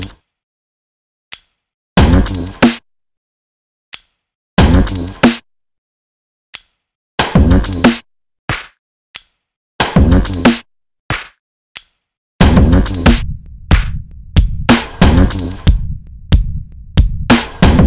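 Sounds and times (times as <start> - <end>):
beat made with iPhone BeatMaker: 2.0 - 2.8, 4.6 - 5.4, 10.0 - 11.4, 12.4 - 17.8.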